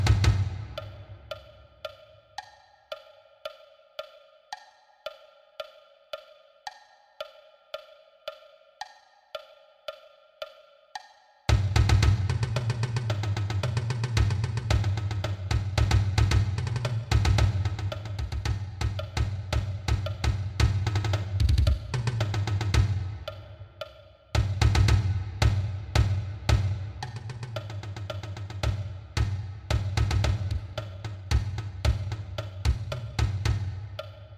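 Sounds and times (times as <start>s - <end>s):
marching bass drum: 0.0s - 0.8s, 11.5s - 23.3s, 24.4s - 34.0s.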